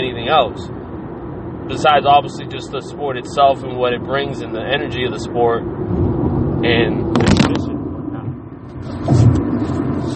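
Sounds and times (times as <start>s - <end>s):
road rumble from inside a moving car: 0.0s - 10.1s
speech: 0.3s - 0.8s, 1.7s - 6.0s, 6.6s - 7.6s
scrape: 8.8s - 10.1s.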